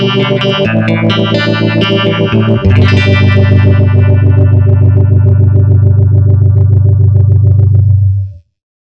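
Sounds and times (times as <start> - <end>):
clean guitar with tri vibe effect through a tube amp: 0.0 - 8.4.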